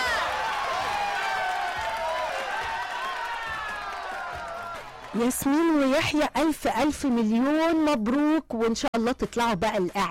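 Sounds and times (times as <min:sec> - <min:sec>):
audience applauding and cheering: 0:00.0 - 0:06.0
speech: 0:05.2 - 0:10.0.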